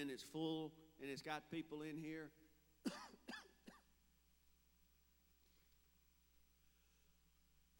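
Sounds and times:
speech: 0.0 - 3.2
person coughing: 2.8 - 3.9.

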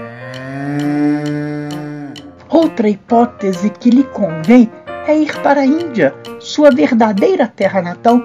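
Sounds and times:
cow mooing: 0.0 - 2.4
speech: 2.5 - 8.2.

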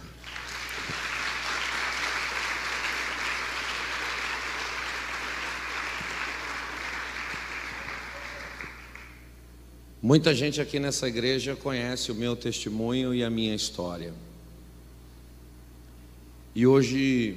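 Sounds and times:
audience applause: 0.0 - 9.2
speech: 10.1 - 14.3, 16.6 - 17.3.

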